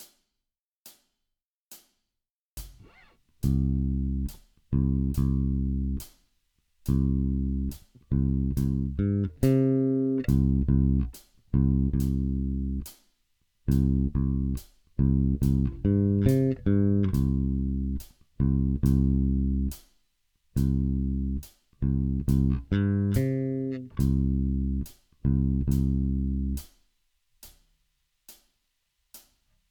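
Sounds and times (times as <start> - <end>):
bass fills: 3.4 - 6.1, 6.9 - 12.9, 13.7 - 19.8, 20.6 - 26.6.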